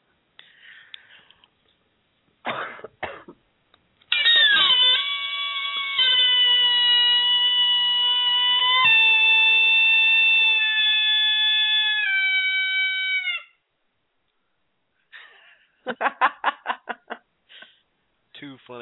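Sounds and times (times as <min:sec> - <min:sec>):
coyote call blown on a game call: 0:04.1 - 0:13.5
laughter: 0:15.2 - 0:17.2.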